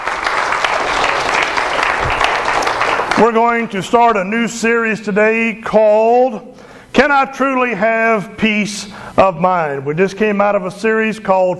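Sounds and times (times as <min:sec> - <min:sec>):
audience applause: 0:00.0 - 0:03.3
speech: 0:03.2 - 0:11.5.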